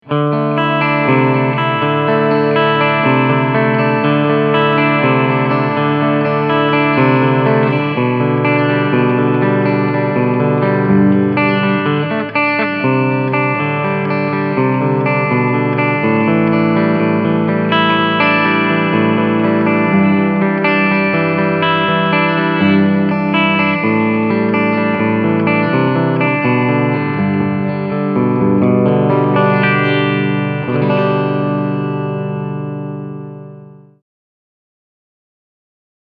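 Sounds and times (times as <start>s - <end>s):
clean humbucker electric guitar: 0.0s - 34.0s.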